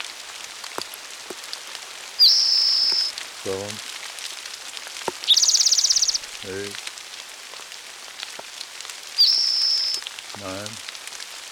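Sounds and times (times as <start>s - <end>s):
light rain falling: 0.0s - 11.4s
short low pulsing call: 2.2s - 3.1s, 5.2s - 6.8s, 9.2s - 10.7s
speech: 3.4s - 3.9s, 6.4s - 6.8s, 10.4s - 10.8s.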